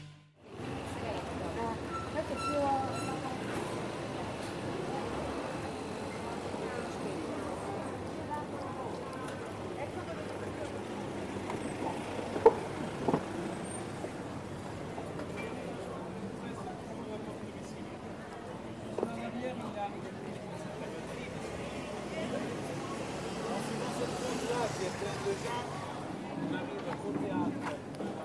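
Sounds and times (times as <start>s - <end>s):
low traffic rumble in Taormina: 0.4s - 28.2s
murmur of voices in Taormina streets: 0.5s - 28.2s.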